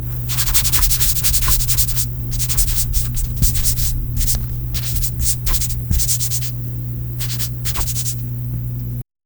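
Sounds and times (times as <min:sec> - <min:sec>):
person smearing: 0:00.0 - 0:08.3.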